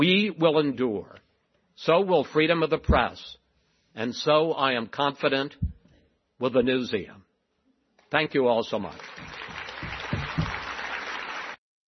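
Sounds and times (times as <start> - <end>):
speech: 0.0 - 1.2, 1.8 - 3.4, 4.0 - 5.8, 6.4 - 7.2, 8.1 - 9.5
light clapping after a speech: 9.0 - 11.6.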